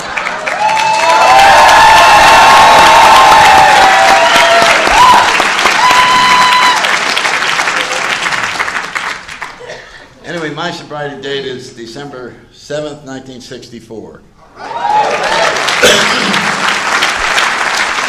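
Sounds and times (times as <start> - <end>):
audience applause: 0.0 - 9.7, 14.6 - 18.0
speech: 10.7 - 16.6.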